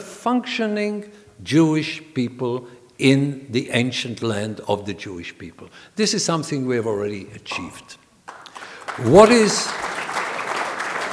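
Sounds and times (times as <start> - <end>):
speech: 0.2 - 8.0, 9.0 - 9.9
audience applause: 8.3 - 11.1.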